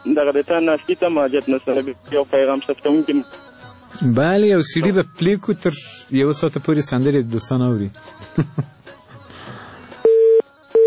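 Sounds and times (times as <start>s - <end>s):
speech: 0.1s - 8.8s
telephone busy tone after a cut-off phone-in call: 10.0s - 10.8s.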